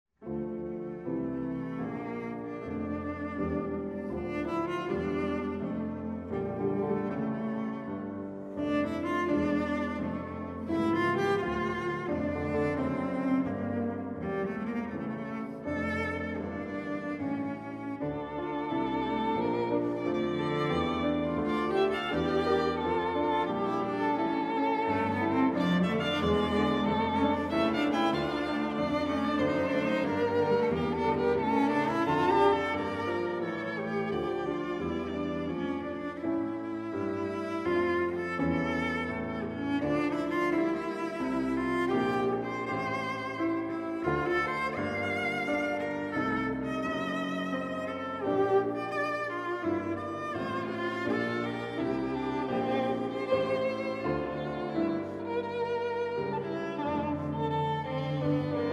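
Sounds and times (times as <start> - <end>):
piano trio: 0.2 - 58.7.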